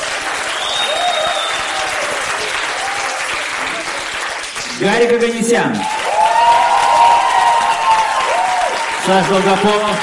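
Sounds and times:
audience applause voting for a performer: 0.0s - 10.0s
speech: 4.8s - 6.0s, 9.1s - 10.0s.

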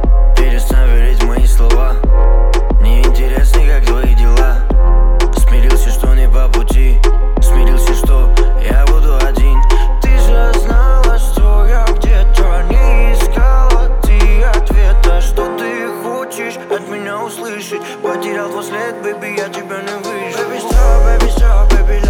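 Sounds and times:
35-39Hz low bass tone: 0.0s - 15.4s, 20.7s - 22.0s.

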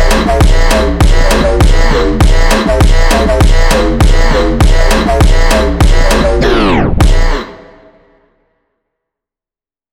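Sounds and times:
funk music: 0.0s - 7.5s.

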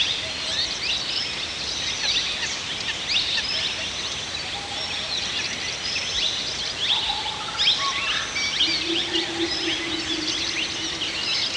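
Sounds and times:
several birds singing in a forest: 0.0s - 11.5s.

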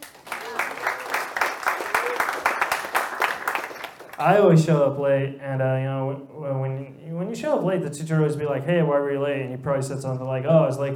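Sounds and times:
audience applause: 0.0s - 4.4s
speech: 4.2s - 10.9s.

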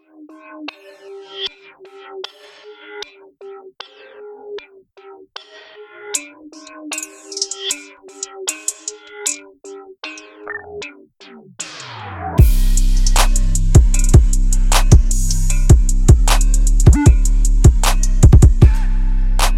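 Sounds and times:
beats: 7.0s - 9.4s, 11.6s - 19.5s.

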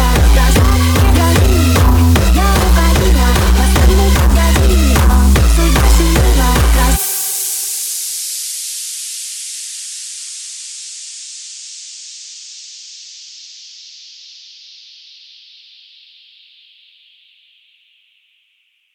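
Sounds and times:
hardstyle remix: 0.0s - 8.8s.

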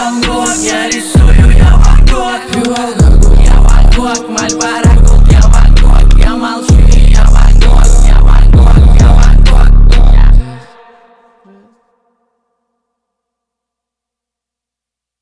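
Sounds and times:
boosted bass: 0.0s - 2.4s, 3.0s - 10.5s.

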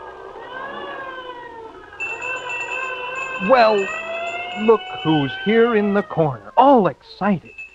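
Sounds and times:
fire engine siren wailing: 0.0s - 7.3s
speech: 3.4s - 4.0s, 4.6s - 7.6s.

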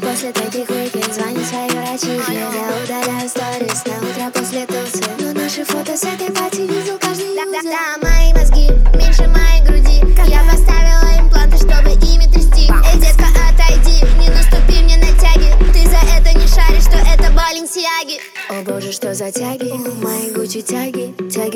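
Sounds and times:
low bass tone: 8.0s - 17.4s.

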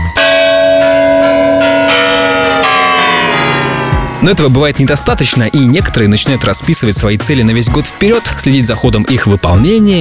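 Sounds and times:
clock tower chimes striking: 0.0s - 6.4s
speech: 4.2s - 9.9s.

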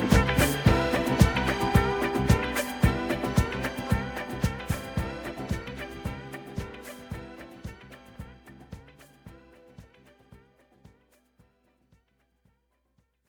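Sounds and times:
blissful beats: 0.0s - 10.0s.

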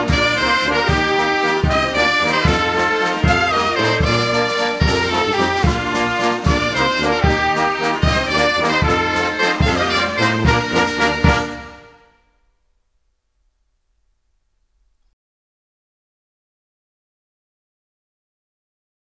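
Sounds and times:
violin: 0.0s - 12.1s.

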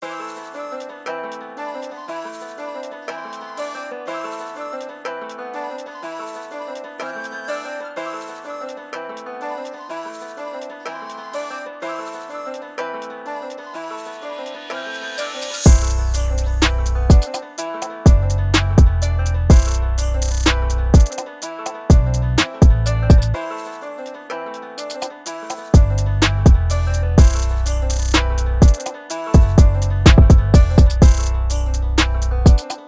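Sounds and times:
beats: 15.2s - 23.4s, 24.8s - 32.8s.

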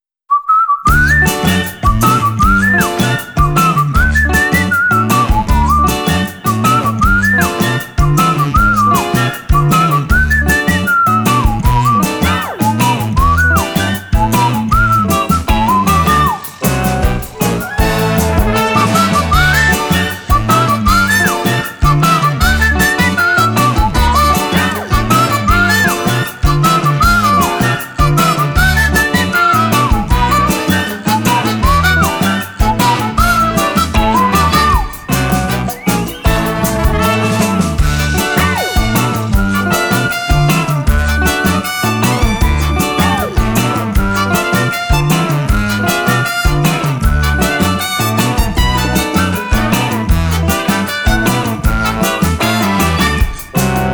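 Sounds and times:
positive whistle: 0.3s - 53.9s.

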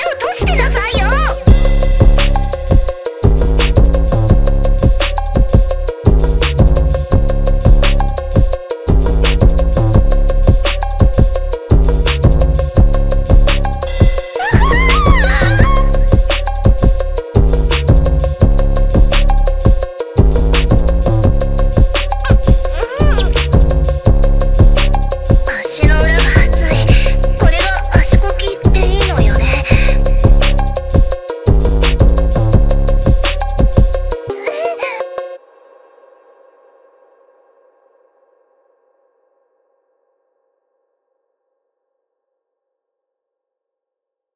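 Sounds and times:
phonk music: 0.0s - 35.4s.

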